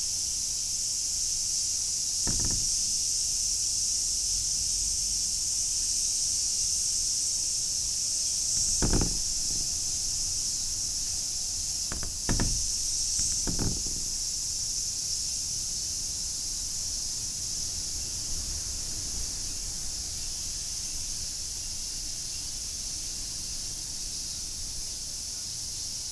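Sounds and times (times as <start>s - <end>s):
cicada buzzing: 0.0s - 26.0s
low thumping rattles: 2.2s - 3.4s, 8.5s - 14.8s.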